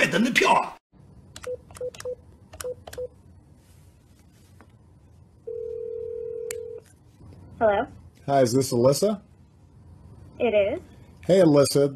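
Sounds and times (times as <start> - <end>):
speech: 0.1 - 0.8, 7.6 - 9.3, 10.4 - 11.9
telephone ringing tone: 5.4 - 6.8.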